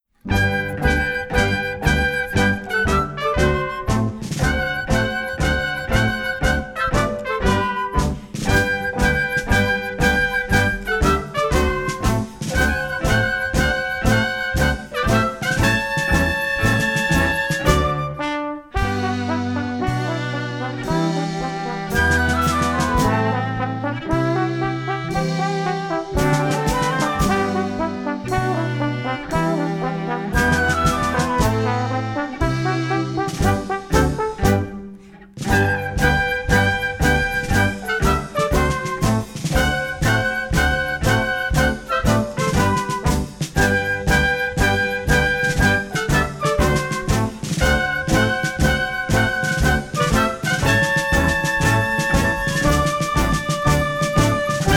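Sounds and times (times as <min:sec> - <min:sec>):
exit music: 0:00.0 - 0:54.7.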